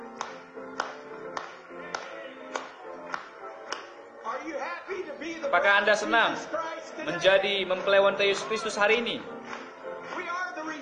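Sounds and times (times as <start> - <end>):
congregation hand clapping in a church service: 0.0 - 4.0, 9.2 - 10.8
speech: 5.3 - 9.4.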